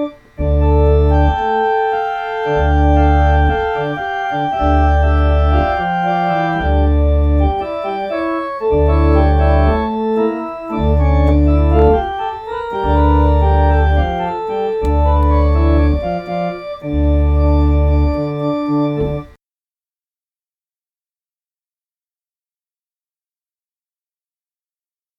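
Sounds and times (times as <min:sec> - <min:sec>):
baroque style improvisation: 0:00.0 - 0:19.4.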